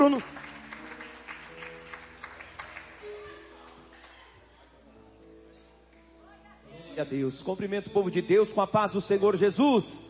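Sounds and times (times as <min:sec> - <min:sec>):
speech: 0:00.0 - 0:00.4, 0:07.0 - 0:10.0
audience clapping along in rhythm: 0:00.0 - 0:04.3.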